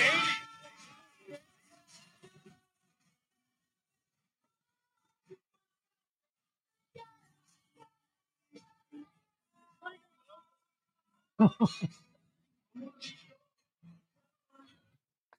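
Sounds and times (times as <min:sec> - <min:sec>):
karaoke video of a man singing pop song: 0:00.0 - 0:00.5
laughter: 0:11.4 - 0:12.0.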